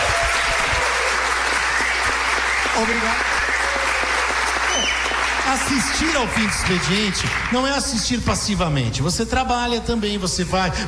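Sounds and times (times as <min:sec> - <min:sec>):
studio audience at a live talk show applauding: 0:00.0 - 0:08.2
speech: 0:02.8 - 0:03.3, 0:05.5 - 0:10.8.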